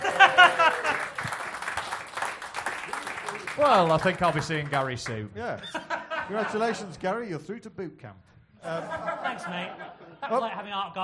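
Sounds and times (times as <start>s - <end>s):
laughter: 0.0s - 1.3s, 5.6s - 7.0s, 8.6s - 10.9s
audience applause: 0.0s - 5.2s
speech: 3.6s - 11.0s.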